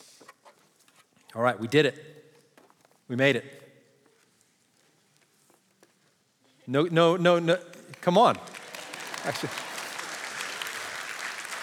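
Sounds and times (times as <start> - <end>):
speech: 1.3 - 2.2, 3.1 - 3.6, 6.7 - 8.5, 9.2 - 9.7
audience applause: 8.4 - 11.6.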